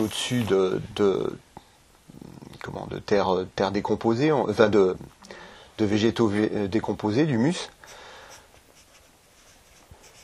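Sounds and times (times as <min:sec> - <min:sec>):
speech: 0:00.0 - 0:01.5, 0:02.6 - 0:05.2, 0:05.8 - 0:08.0
writing by hand: 0:08.2 - 0:10.2.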